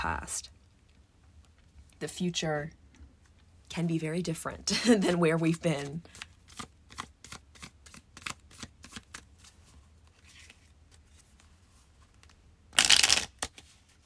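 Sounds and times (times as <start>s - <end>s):
speech: 0.0s - 0.6s, 2.0s - 2.8s, 3.7s - 6.7s
playing cards being shuffled: 5.7s - 14.0s.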